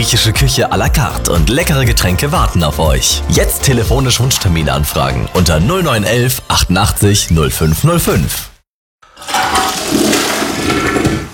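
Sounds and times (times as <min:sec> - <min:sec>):
speech: 0:00.1 - 0:08.5
toilet flushing but not draining: 0:09.1 - 0:11.3.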